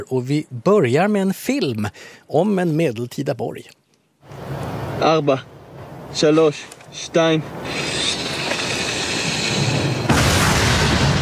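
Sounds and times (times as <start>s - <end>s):
speech: 0.0s - 3.8s, 5.0s - 5.5s, 6.1s - 8.0s
rumbling wash of noise in a war film: 7.5s - 11.1s
war-film explosion as soldiers blow up their own bunkers: 9.6s - 11.1s.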